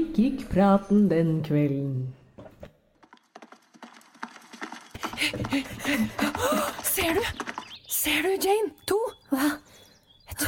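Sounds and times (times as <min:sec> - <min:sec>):
speech: 0:00.2 - 0:02.2, 0:05.5 - 0:09.7
horse hooves clip-clopping while riding: 0:02.4 - 0:08.8.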